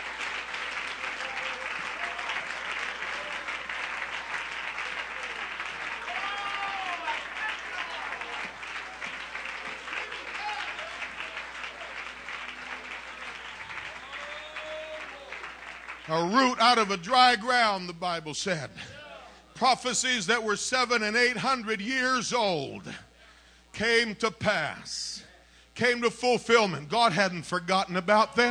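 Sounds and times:
audience clapping hands: 0.0s - 18.1s
speech: 16.1s - 19.0s, 19.6s - 23.0s, 23.8s - 25.1s, 25.8s - 28.4s.

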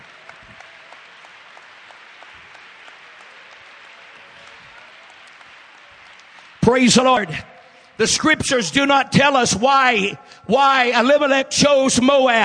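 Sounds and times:
audience clapping hands: 0.0s - 8.6s
speech: 6.6s - 12.4s.

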